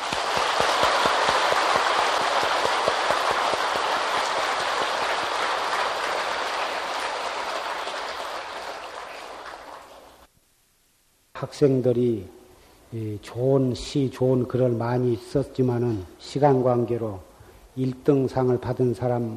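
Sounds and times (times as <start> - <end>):
audience applause: 0.0 - 10.3
speech: 11.5 - 19.3.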